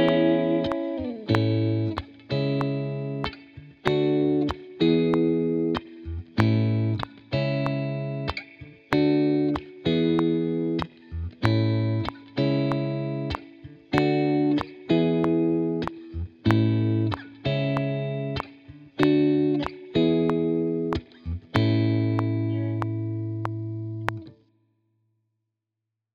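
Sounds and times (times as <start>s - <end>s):
blues solo in A major: 0.0s - 24.4s.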